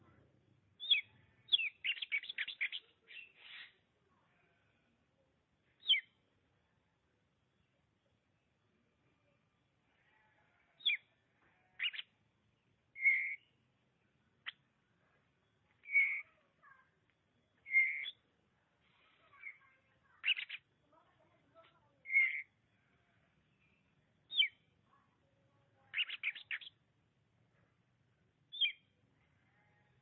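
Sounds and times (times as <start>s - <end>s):
oriental magpie-robin song: 0.8s - 3.8s, 5.7s - 6.3s, 10.8s - 18.3s, 19.3s - 21.1s, 22.0s - 24.7s, 25.9s - 26.8s, 28.5s - 29.0s.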